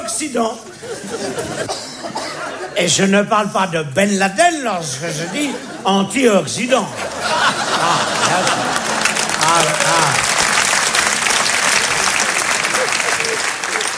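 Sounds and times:
speech: 0.1 - 8.9
laughter: 0.6 - 2.8, 5.0 - 5.9, 6.9 - 9.3
audience applause: 7.1 - 13.9.

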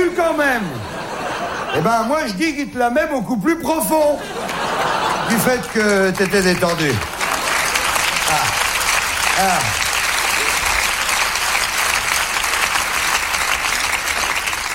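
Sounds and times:
laughter: 0.4 - 2.4, 3.9 - 11.2
speech: 1.7 - 7.1, 9.4 - 9.8
audience applauding: 4.2 - 14.7.

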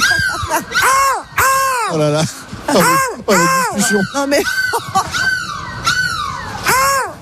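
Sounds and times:
person imitating a seagull call: 0.0 - 2.1, 2.7 - 4.9, 6.6 - 7.2
speech: 0.5 - 0.8, 1.9 - 5.2.

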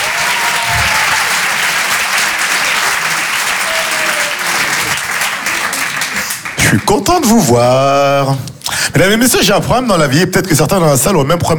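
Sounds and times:
comedy club crowd clapping and cheering: 0.0 - 7.6
speech: 6.8 - 11.5.

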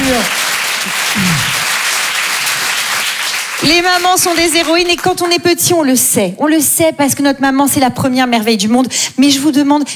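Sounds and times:
audience applause for all the mothers at a live show: 0.0 - 5.0
speech: 3.6 - 9.9.

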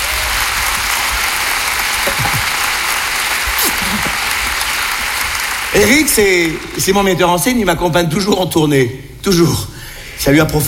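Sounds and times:
audience applause: 0.0 - 8.0
speech: 5.7 - 10.6.

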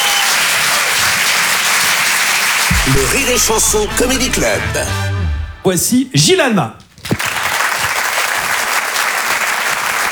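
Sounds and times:
audience applause at a comedy club: 0.0 - 4.8, 7.0 - 10.1
speech: 2.9 - 6.8.

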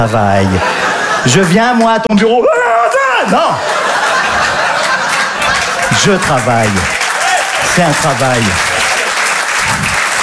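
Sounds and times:
speech: 0.0 - 3.9, 5.9 - 7.0, 7.7 - 8.8
laughter: 0.0 - 10.2
applause: 3.7 - 10.2.

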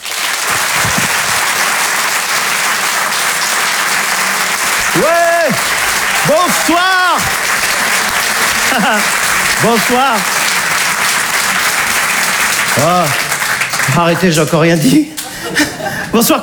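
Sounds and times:
audience applause: 0.0 - 16.4
laughter: 4.2 - 16.4
speech: 5.0 - 5.6, 6.2 - 8.0, 8.7 - 10.4, 12.8 - 13.2, 13.9 - 16.4.

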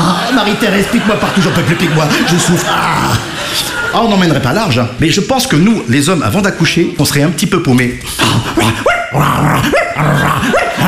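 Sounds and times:
laughter: 0.0 - 4.5
speech: 0.5 - 10.8
man imitating dog barks: 8.5 - 10.8.

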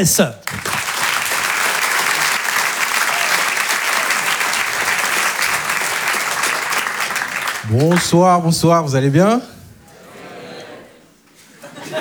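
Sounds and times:
speech: 0.0 - 0.6, 7.7 - 9.6
audience applause welcoming a comedian: 0.4 - 8.6
laughter: 9.5 - 11.9.

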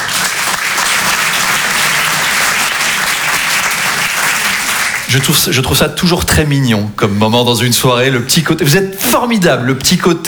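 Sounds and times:
audience clapping hands: 0.0 - 5.8
speech: 5.1 - 10.2.

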